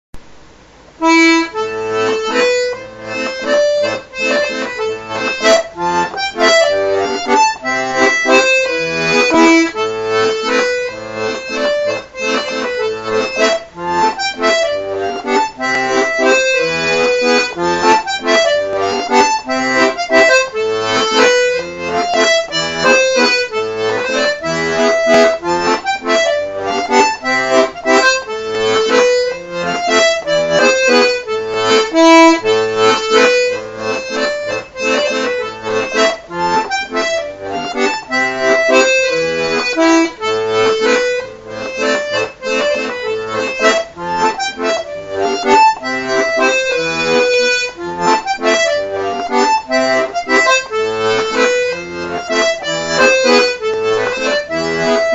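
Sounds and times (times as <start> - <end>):
waltz music: 1.0 - 55.1.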